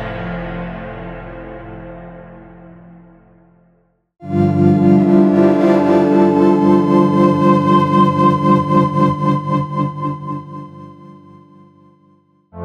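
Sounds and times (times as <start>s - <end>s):
preset pad sounds: 4.3s - 11.6s.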